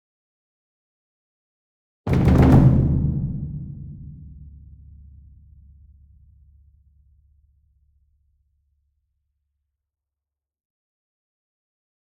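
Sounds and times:
large concert bass drum medium roll: 0:02.1 - 0:07.0.

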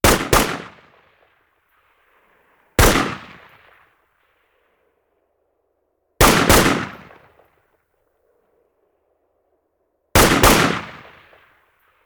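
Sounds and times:
rifle: 0:00.0 - 0:04.8, 0:06.2 - 0:07.8, 0:10.2 - 0:12.0.

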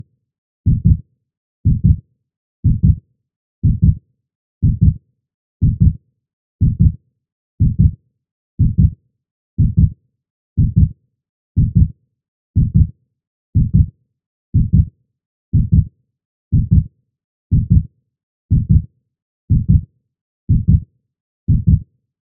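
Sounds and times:
fast heartbeat: 0:00.7 - 0:01.0, 0:01.7 - 0:02.0, 0:02.6 - 0:03.0, 0:03.6 - 0:04.0, 0:04.6 - 0:05.0, 0:05.6 - 0:06.0, 0:06.6 - 0:07.0, 0:07.6 - 0:08.0, 0:08.6 - 0:09.0, 0:09.6 - 0:09.9, 0:10.6 - 0:10.9, 0:11.6 - 0:11.9, 0:12.6 - 0:12.9, 0:13.6 - 0:13.9, 0:14.6 - 0:14.9, 0:15.6 - 0:15.9, 0:16.6 - 0:16.9, 0:17.5 - 0:17.9, 0:18.5 - 0:18.8, 0:19.5 - 0:19.8, 0:20.5 - 0:20.8, 0:21.5 - 0:21.8.

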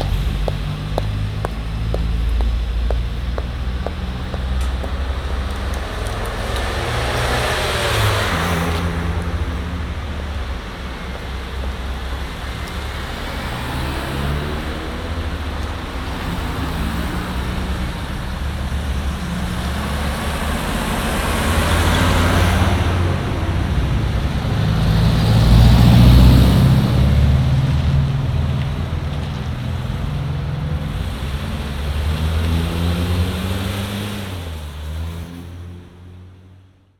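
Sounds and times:
footsteps in the city: 0:00.0 - 0:06.8
city street traffic with cars: 0:00.0 - 0:36.9.

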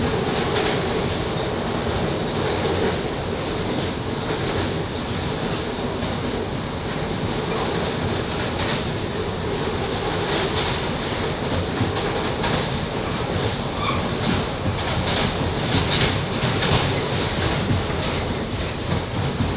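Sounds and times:
London underground train interior during a ride: 0:00.0 - 0:19.5.

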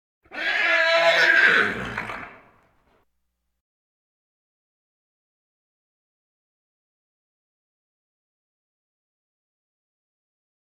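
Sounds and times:
farm animal grunts: 0:01.2 - 0:02.5.

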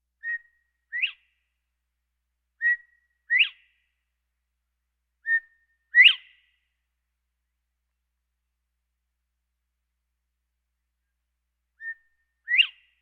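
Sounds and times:
birds: 0:02.6 - 0:03.8, 0:05.3 - 0:06.6, 0:11.8 - 0:12.9.

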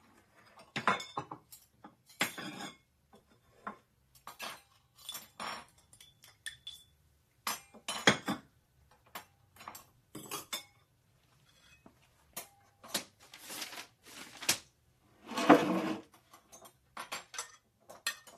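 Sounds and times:
dishes clattering in background: 0:00.3 - 0:10.9, 0:15.3 - 0:18.3.

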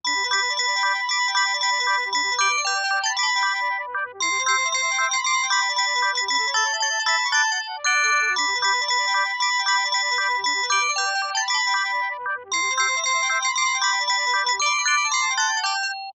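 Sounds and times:
phone ringtone: 0:00.0 - 0:16.1.

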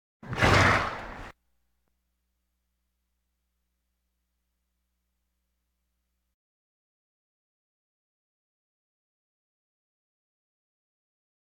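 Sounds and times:
farm animal snorts: 0:00.2 - 0:01.3.

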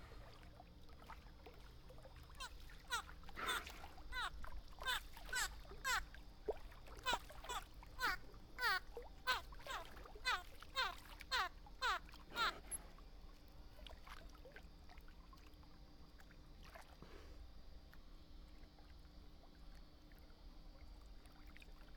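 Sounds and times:
animal squeak: 0:02.4 - 0:06.0, 0:07.0 - 0:12.7.

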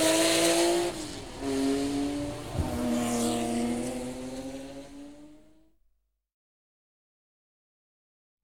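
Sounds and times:
race cars general atmosphere: 0:00.0 - 0:05.8.

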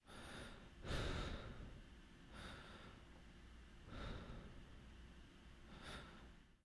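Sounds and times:
breathing: 0:00.0 - 0:03.2, 0:03.8 - 0:04.8, 0:05.6 - 0:06.4.

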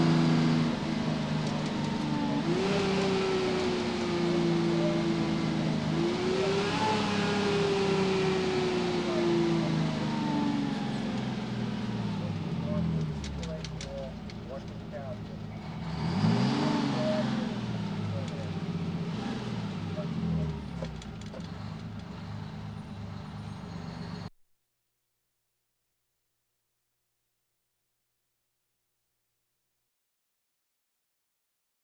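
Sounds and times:
police sirens: 0:00.0 - 0:24.3.

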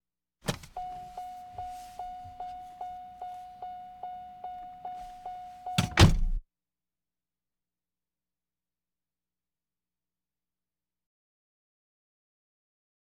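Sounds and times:
various automobiles: 0:00.5 - 0:06.4.

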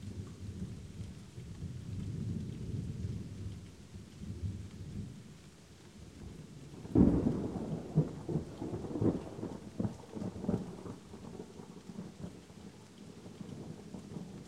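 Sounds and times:
light rain: 0:00.0 - 0:14.4
light thunder: 0:06.8 - 0:11.3.

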